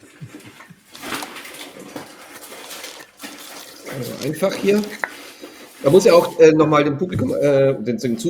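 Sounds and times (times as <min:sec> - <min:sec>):
unpacking wrapped wine bottles from travel bag: 0:00.0 - 0:06.4
speech: 0:04.0 - 0:05.1, 0:05.8 - 0:08.2.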